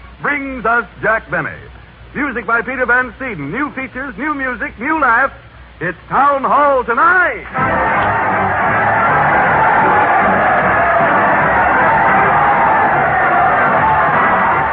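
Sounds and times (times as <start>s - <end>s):
speech: 0.2s - 8.5s
crowd cheering: 7.5s - 14.7s.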